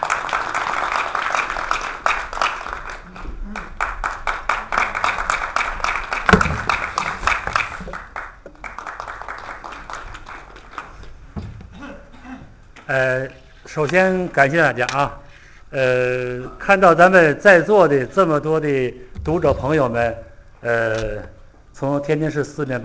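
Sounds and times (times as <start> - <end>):
warm applause: 0.0 - 11.1
speech: 12.9 - 22.8.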